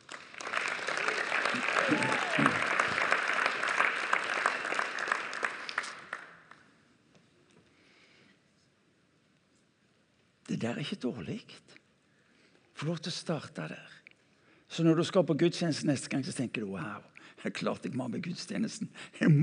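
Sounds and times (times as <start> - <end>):
audience applauding: 0.0 - 6.6
speech: 10.8 - 11.8, 12.8 - 14.0, 14.7 - 19.4.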